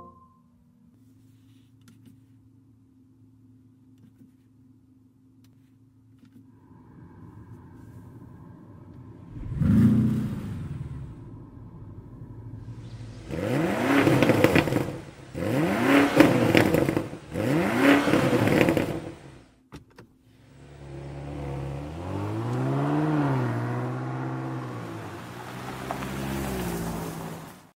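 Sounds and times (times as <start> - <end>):
Brilliance car engine: 6.2 - 19.6, 20.3 - 27.6.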